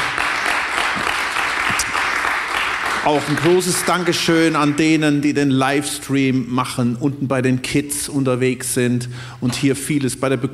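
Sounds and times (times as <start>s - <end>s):
audience applause: 0.0s - 5.0s
speech: 3.0s - 10.5s.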